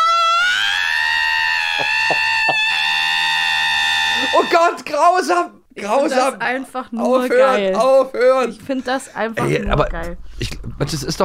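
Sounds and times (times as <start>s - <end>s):
screaming alarm clock: 0.1s - 4.8s
speech: 4.3s - 11.2s.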